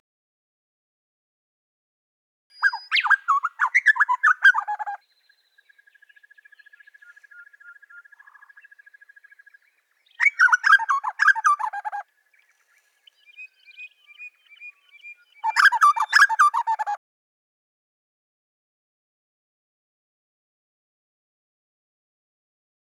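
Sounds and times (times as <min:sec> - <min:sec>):
grey butcherbird song: 0:02.5 - 0:17.0.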